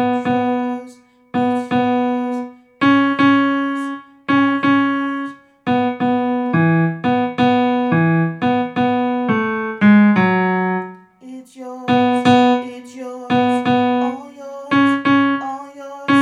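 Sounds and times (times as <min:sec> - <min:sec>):
piano breakdown: 0:00.0 - 0:16.2
choir singing: 0:11.9 - 0:16.2.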